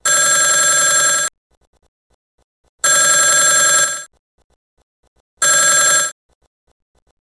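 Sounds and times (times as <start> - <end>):
classic old phone ringtone: 0.0 - 1.3, 2.8 - 4.1, 5.4 - 6.2.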